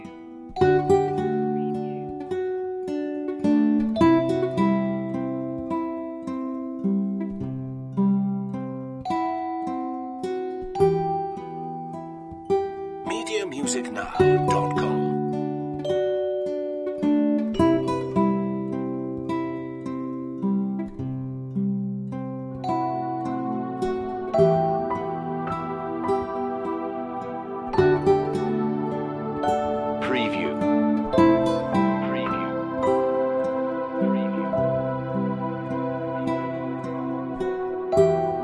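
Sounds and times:
relaxation music: 0.0 - 38.4.

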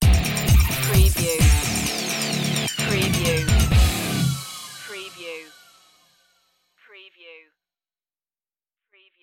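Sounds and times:
80s revenge music stinger: 0.0 - 6.4.

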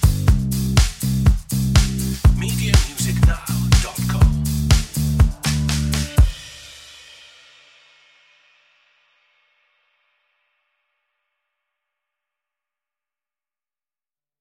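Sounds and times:
hopeful bass: 0.0 - 6.4
hopeful drums: 0.0 - 9.7.

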